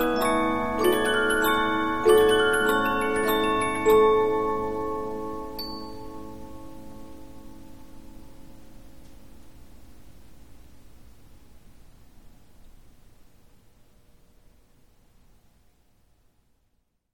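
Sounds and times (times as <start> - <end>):
Polyphon 15-inch disc music box playing: 0.0 - 6.6.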